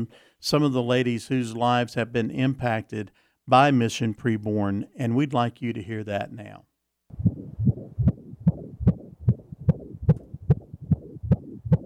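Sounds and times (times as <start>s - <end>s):
speech: 0.0s - 7.3s
unborn baby's heartbeat on an ultrasound monitor: 7.1s - 11.8s.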